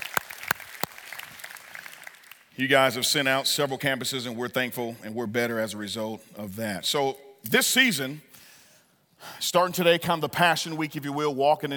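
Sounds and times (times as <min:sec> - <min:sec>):
audience round of applause: 0:00.0 - 0:02.5
speech: 0:02.6 - 0:08.4, 0:09.2 - 0:11.7.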